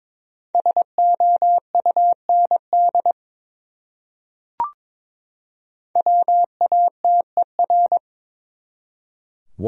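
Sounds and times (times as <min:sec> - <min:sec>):
Morse code tones spelling a word: 0:00.6 - 0:03.2, 0:06.0 - 0:08.0.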